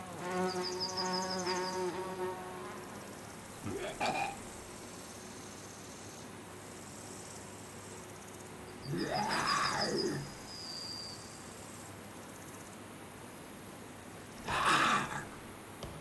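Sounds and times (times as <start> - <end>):
countryside ambience: 0.0 - 15.9.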